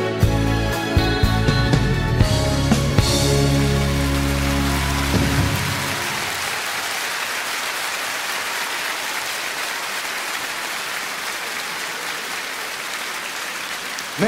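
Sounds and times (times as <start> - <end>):
brief musical ending: 0.2 - 6.5
mostly female audience applause and cheering at a singer's concert: 2.1 - 14.2.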